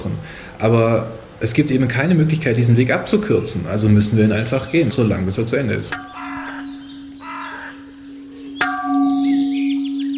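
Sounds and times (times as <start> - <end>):
speech: 0.6 - 6.2
crows cawing: 6.0 - 8.6
newly cast bell ringing: 8.3 - 10.1.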